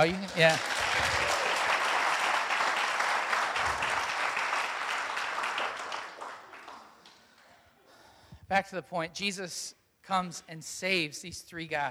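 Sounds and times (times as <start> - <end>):
speech: 0.0 - 1.2, 8.5 - 11.8
crowd applauding: 0.0 - 7.5.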